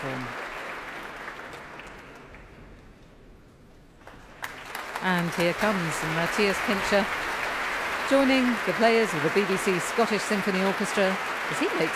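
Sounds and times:
concert hall audience applause: 0:00.0 - 0:02.6, 0:04.1 - 0:11.9
speech: 0:05.0 - 0:07.3, 0:08.1 - 0:11.9.

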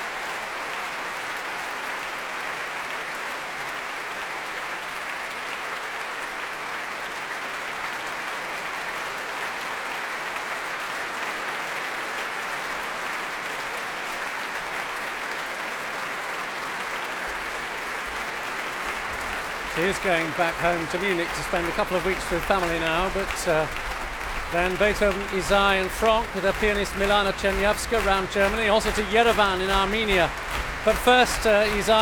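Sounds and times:
large concert audience applause: 0:00.0 - 0:32.0
laughter: 0:19.3 - 0:32.0
speech: 0:19.8 - 0:23.9, 0:24.5 - 0:32.0.

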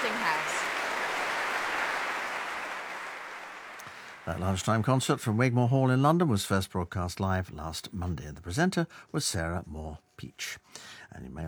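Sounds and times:
concert hall audience applause: 0:00.0 - 0:04.9
speech: 0:04.2 - 0:11.4.

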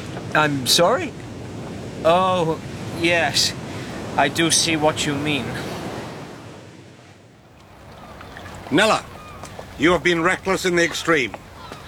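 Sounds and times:
waves washing around a harbour: 0:00.0 - 0:11.8
wind-like noise: 0:00.0 - 0:11.8
speech: 0:00.3 - 0:01.2, 0:02.0 - 0:03.6, 0:04.2 - 0:05.7, 0:08.7 - 0:09.1, 0:09.8 - 0:11.4.

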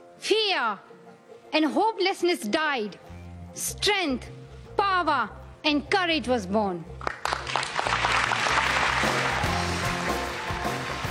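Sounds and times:
speech: 0:00.2 - 0:07.0
UN delegates applauding: 0:07.0 - 0:11.0.

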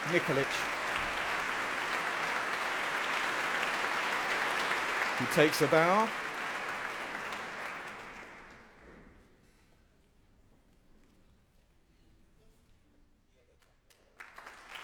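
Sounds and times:
concert audience applause: 0:00.0 - 0:08.8, 0:14.2 - 0:14.8
speech: 0:00.1 - 0:00.8, 0:05.2 - 0:06.2.

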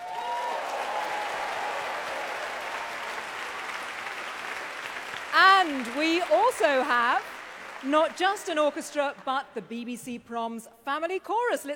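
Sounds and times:
concert audience applause for a family orchestra: 0:00.0 - 0:09.4
speech: 0:05.3 - 0:11.7.

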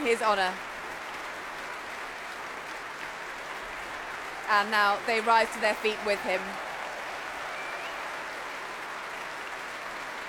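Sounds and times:
large concert crowd and orchestra applauding: 0:00.0 - 0:10.2
speech: 0:00.1 - 0:00.7, 0:04.5 - 0:06.7.

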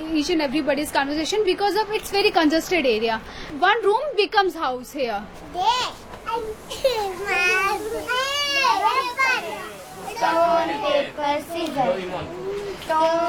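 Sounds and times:
speech: 0:00.2 - 0:13.2
children playing and shouting in a street: 0:06.3 - 0:13.2.

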